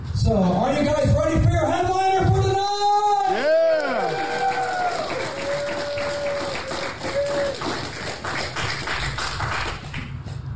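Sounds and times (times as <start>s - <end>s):
speech: 0.3s - 2.3s
audience ovation for comedian: 3.2s - 9.9s.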